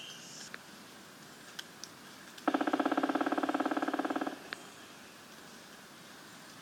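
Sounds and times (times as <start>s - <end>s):
black woodpecker drumming: 2.5s - 4.7s.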